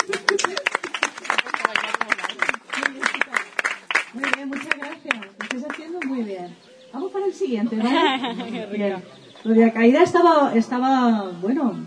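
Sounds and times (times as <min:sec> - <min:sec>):
laughter: 0:00.0 - 0:03.5, 0:07.7 - 0:09.0
audience applause: 0:00.0 - 0:05.8
speech: 0:07.3 - 0:11.8.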